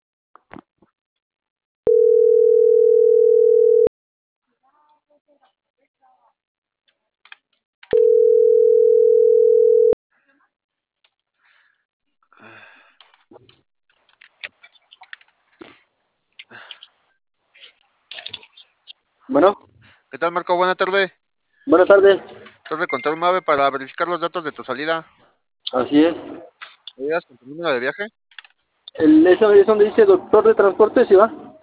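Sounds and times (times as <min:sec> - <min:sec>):
telephone call ringing tone: 0:01.9 - 0:03.9, 0:07.9 - 0:10.0
speech: 0:20.2 - 0:26.4, 0:27.0 - 0:28.2, 0:29.0 - 0:31.4.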